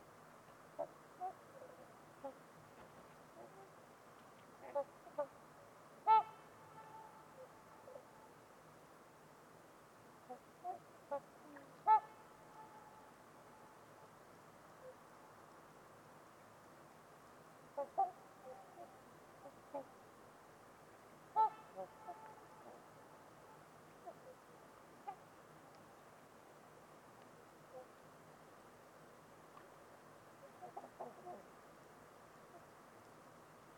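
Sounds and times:
quiet background hiss: 0:00.0 - 0:33.7
trumpeter swan honks: 0:00.8 - 0:02.4, 0:04.6 - 0:05.4, 0:06.0 - 0:08.4, 0:10.2 - 0:14.1, 0:17.7 - 0:20.1, 0:21.3 - 0:25.4, 0:27.7 - 0:28.0, 0:30.4 - 0:31.5.

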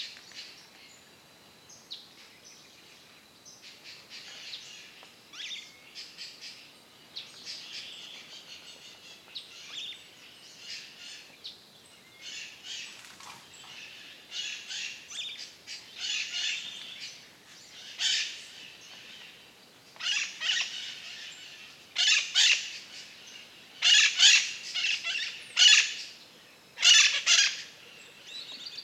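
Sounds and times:
wind on a cloudy winter morning in the Atlantic Forest: 0:00.0 - 0:28.8.

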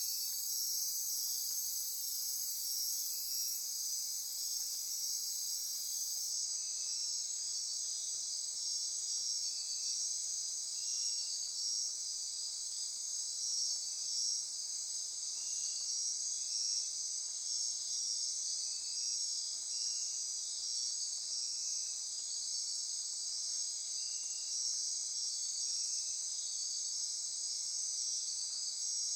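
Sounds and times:
insect chorus: 0:00.0 - 0:29.1.

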